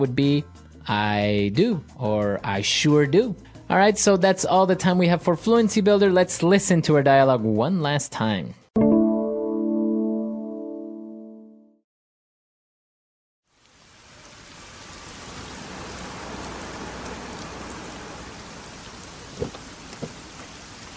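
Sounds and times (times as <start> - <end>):
speech: 0.0 - 8.6
short musical tone: 8.8 - 11.8
heavy rain pouring: 13.5 - 20.9.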